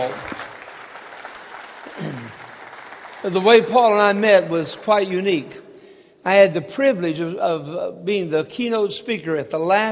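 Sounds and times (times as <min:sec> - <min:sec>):
speech: 0:00.0 - 0:00.3, 0:03.2 - 0:05.6, 0:06.2 - 0:09.9
audience applause: 0:00.0 - 0:05.0.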